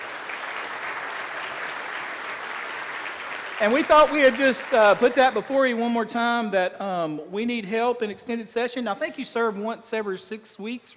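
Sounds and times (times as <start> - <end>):
audience applause: 0.0 - 5.7
speech: 3.6 - 10.9.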